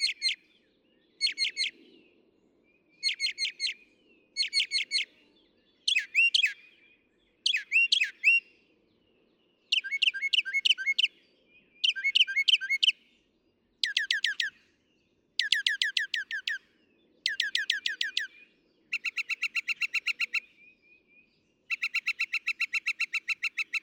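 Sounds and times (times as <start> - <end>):
Northern Mockingbird singing: 0.0 - 0.4, 1.2 - 1.8, 3.0 - 3.8, 4.4 - 5.1, 5.8 - 6.8, 7.4 - 8.4, 9.7 - 13.0, 13.8 - 14.6, 15.4 - 16.6, 17.2 - 23.8.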